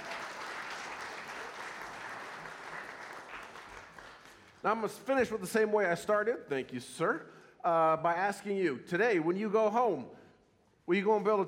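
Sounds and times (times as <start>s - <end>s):
audience round of applause: 0.0s - 4.6s
speech: 4.6s - 10.2s, 10.9s - 11.4s.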